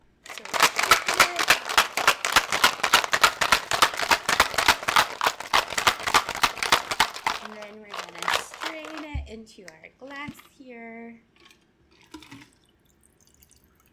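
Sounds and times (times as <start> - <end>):
ice rattling in a cocktail shaker: 0.2 - 9.1
speech: 9.4 - 11.3.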